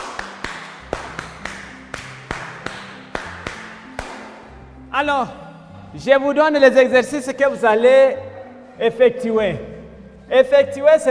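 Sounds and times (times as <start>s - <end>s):
classroom applause: 0.0s - 3.3s
speech: 5.0s - 8.2s, 8.8s - 9.7s, 10.3s - 11.0s.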